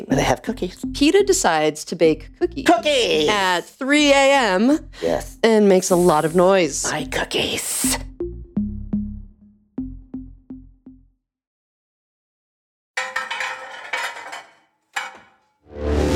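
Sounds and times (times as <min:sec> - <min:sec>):
speech: 0:00.0 - 0:08.1
metal clattering on a Formica counter: 0:13.0 - 0:15.4.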